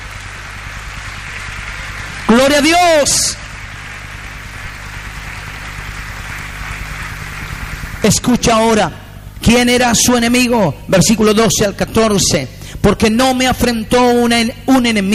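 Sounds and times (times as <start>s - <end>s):
audience applause: 0.0s - 8.2s
speech: 2.3s - 3.4s, 8.0s - 15.1s.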